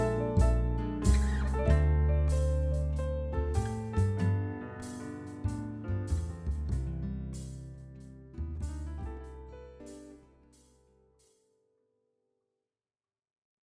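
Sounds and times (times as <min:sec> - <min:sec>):
swing music: 0:00.0 - 0:10.8.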